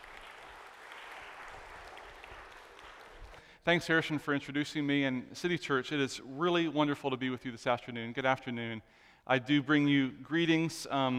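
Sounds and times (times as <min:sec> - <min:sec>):
crowd applauding: 0:00.0 - 0:03.6
speech: 0:03.6 - 0:11.1.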